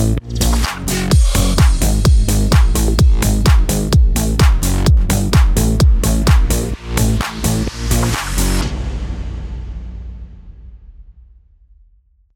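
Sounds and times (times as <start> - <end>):
house bass bed in F minor at 128 BPM: 0.0 - 8.7.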